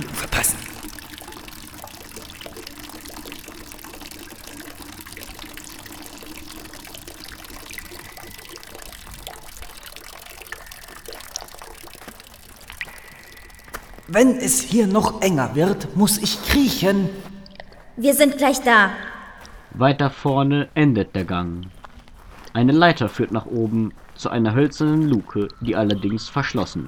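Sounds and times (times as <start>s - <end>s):
bucket being filled with spring water: 0.0s - 17.9s
speech: 14.1s - 17.3s, 18.0s - 19.1s, 19.8s - 21.8s, 22.6s - 26.8s.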